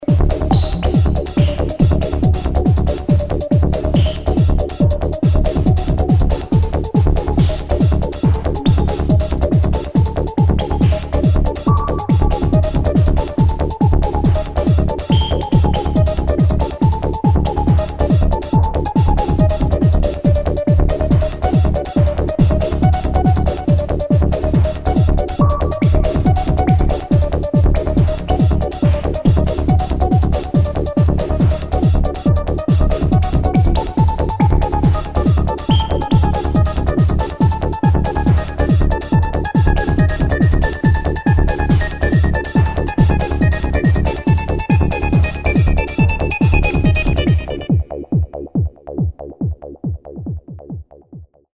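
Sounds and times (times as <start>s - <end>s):
progressive trance music indoors: 0.0s - 50.5s.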